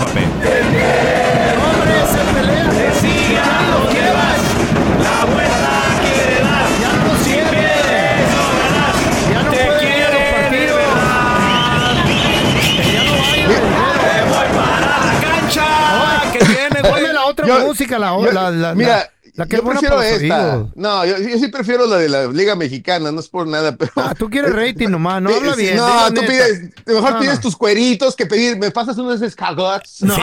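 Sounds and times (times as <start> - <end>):
football fans' stadium chants: 0.0 - 17.0
laughter: 0.0 - 18.5, 23.8 - 26.4, 30.0 - 30.2
speech: 17.5 - 30.2.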